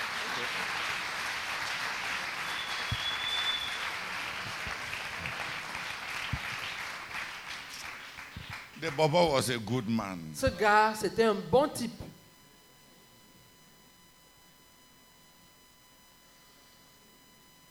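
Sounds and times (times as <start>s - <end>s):
audience applauding: 0.0s - 9.2s
speech: 8.8s - 12.0s.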